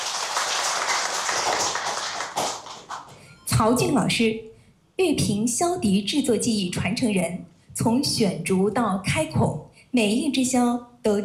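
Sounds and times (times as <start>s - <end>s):
audience applause: 0.0s - 3.1s
speech: 3.6s - 11.2s.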